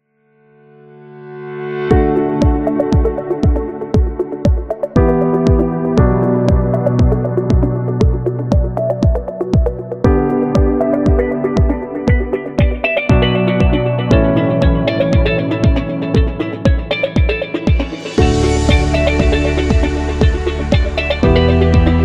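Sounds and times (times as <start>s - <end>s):
soft corporate music: 1.9s - 22.0s.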